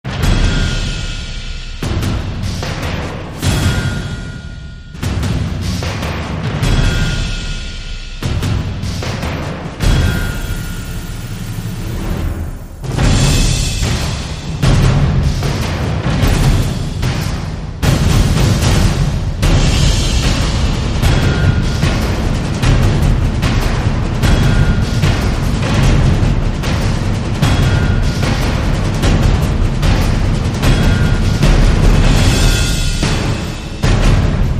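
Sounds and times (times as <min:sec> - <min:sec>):
drums: 0:00.0 - 0:34.5.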